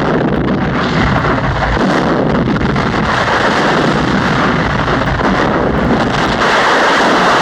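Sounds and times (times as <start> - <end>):
thunder rumbling: 0.0 - 7.4.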